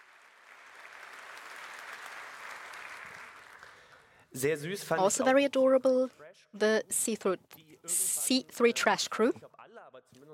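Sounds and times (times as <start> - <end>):
audience applause: 0.0 - 4.2
speech: 4.3 - 10.3.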